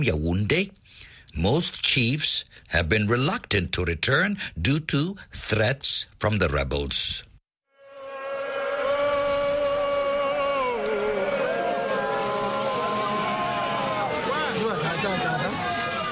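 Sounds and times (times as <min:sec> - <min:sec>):
speech: 0:00.0 - 0:07.3
Vinso crowd shouting and cheering in Kumbu: 0:07.9 - 0:16.1.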